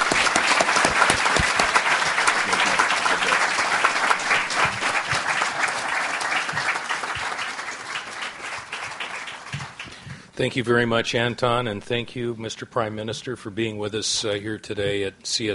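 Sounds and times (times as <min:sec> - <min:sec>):
audience applause: 0:00.0 - 0:10.0
speech: 0:10.4 - 0:15.5.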